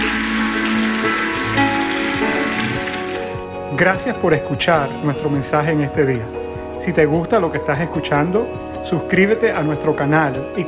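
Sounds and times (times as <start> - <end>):
loud audience applause: 0.0 - 3.4
speech: 3.8 - 10.6.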